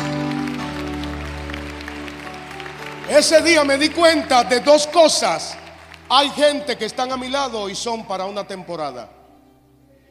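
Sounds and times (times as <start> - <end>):
audience applause: 0.0 - 7.5
speech: 3.1 - 9.2.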